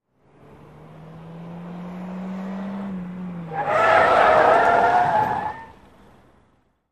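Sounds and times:
small compact car 180 skid: 2.4s - 6.0s.

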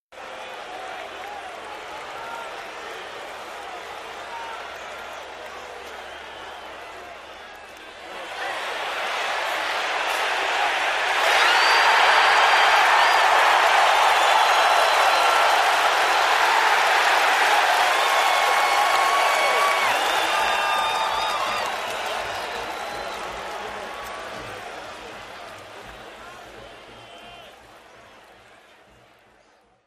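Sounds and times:
idle football crowd in a sports arena: 0.1s - 29.8s.

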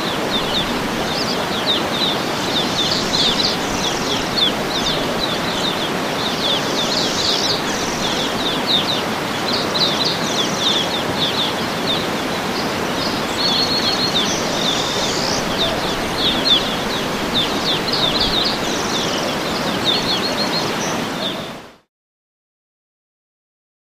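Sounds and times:
jungle ambience: 0.0s - 21.7s.

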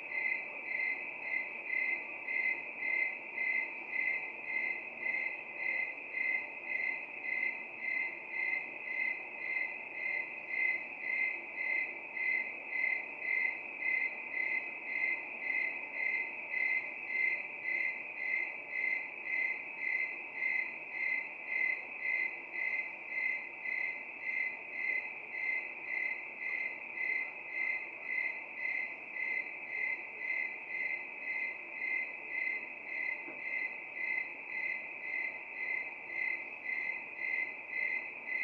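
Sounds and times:
crickets chirping at night: 0.0s - 38.4s.

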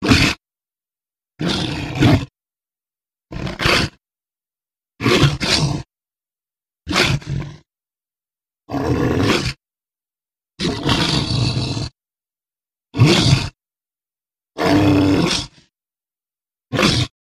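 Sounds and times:
monster roars: 0.0s - 0.4s, 1.4s - 2.3s, 3.3s - 4.0s, 5.0s - 5.9s, 6.9s - 7.6s, 8.7s - 9.6s, 10.6s - 11.9s, 13.0s - 13.6s, 14.6s - 15.7s, 16.7s - 17.1s.

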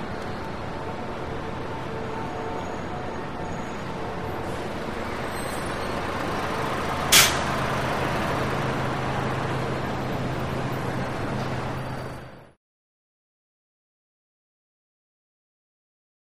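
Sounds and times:
busy city traffic at a bus stop: 0.0s - 12.6s.

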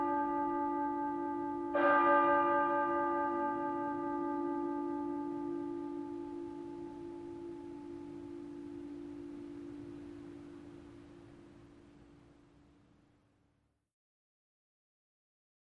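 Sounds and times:
clock tower chime: 0.0s - 11.0s.

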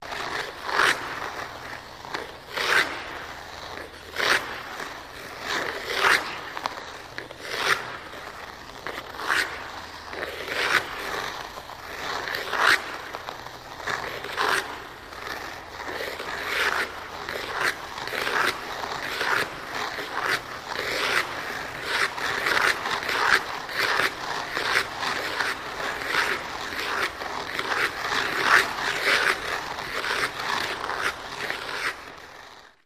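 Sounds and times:
ice skating steady: 0.0s - 32.8s.

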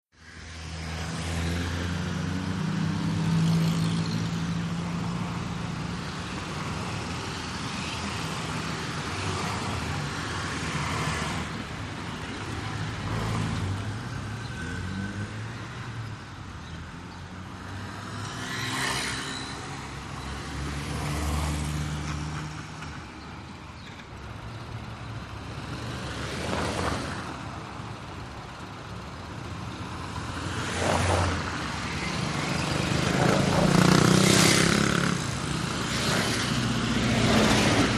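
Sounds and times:
traffic on a small boulevard in Paris: 0.1s - 37.9s.

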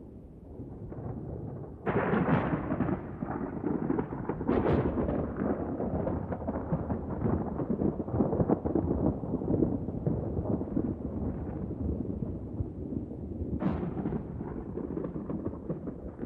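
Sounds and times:
distant thunder: 0.5s - 16.2s.

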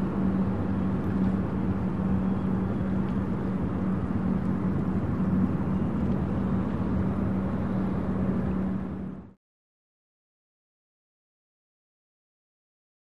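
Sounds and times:
harbor ambience: 0.0s - 9.3s
boat in a harbor: 0.0s - 9.4s.

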